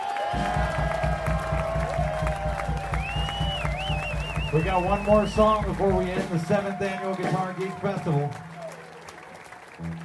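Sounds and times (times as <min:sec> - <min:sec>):
rising whistle: 0:00.0 - 0:05.6
crowd applauding and cheering: 0:00.0 - 0:10.0
regular low thumping pulse: 0:00.4 - 0:06.2
speech: 0:04.6 - 0:08.5.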